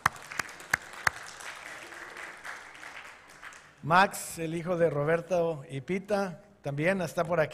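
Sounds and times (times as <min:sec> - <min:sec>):
audience applause: 0:00.0 - 0:03.8
speech: 0:03.8 - 0:07.5.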